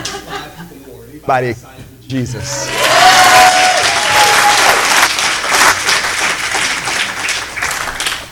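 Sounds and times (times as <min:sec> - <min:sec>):
laughter: 0:00.0 - 0:00.9
speech: 0:01.3 - 0:02.7
audience clapping: 0:02.6 - 0:08.3.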